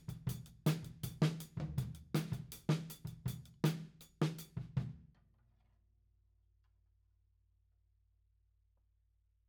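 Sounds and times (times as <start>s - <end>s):
tom drum beat: 0.0s - 5.0s.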